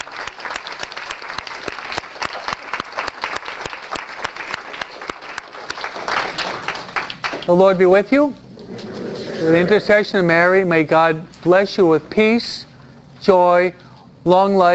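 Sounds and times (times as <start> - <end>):
audience applause: 0.0 - 7.6
speech: 7.5 - 8.4, 9.4 - 12.6, 13.2 - 14.7.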